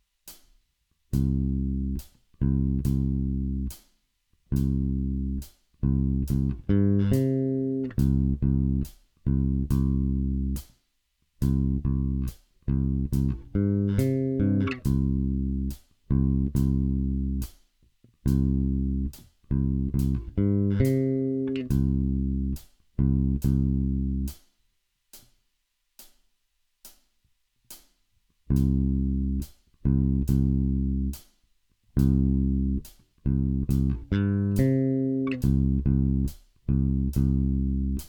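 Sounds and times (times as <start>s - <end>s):
bass fills: 1.2s - 3.8s, 4.5s - 10.7s, 11.4s - 17.5s, 18.2s - 24.3s, 28.5s - 31.2s, 32.0s - 38.0s.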